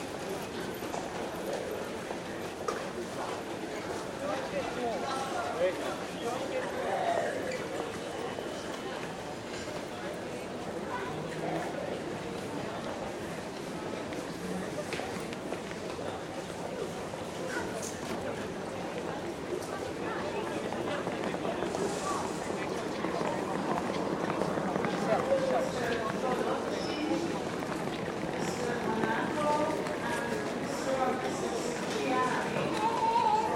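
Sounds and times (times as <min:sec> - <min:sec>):
airport ambience in Denmark: 0:00.0 - 0:33.5.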